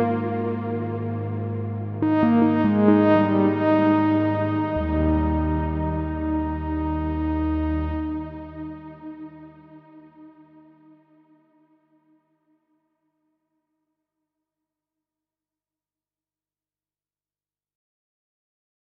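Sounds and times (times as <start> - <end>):
lead melody: 0.0 - 11.0.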